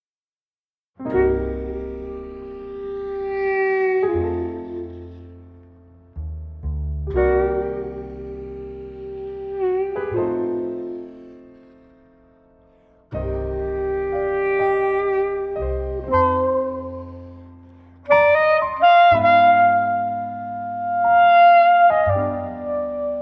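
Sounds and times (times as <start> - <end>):
desert jazz music: 1.0 - 5.6, 6.2 - 11.8, 13.1 - 23.2.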